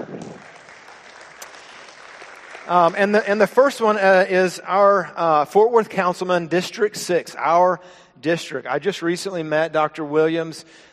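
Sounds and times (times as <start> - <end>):
crowd applauding: 0.0 - 3.3
speech: 2.7 - 10.9.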